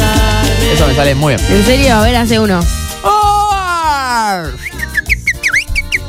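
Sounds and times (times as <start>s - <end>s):
low rhythmic background: 0.0s - 6.0s
speech: 0.8s - 3.4s, 4.3s - 4.8s
person imitating a bird with whistles: 3.3s - 6.0s.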